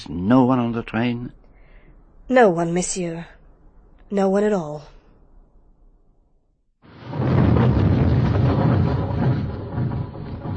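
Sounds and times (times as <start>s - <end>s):
speech: 0.2s - 1.4s, 2.3s - 3.4s, 4.1s - 4.9s
snowplows grinding forward through snow: 7.2s - 10.5s.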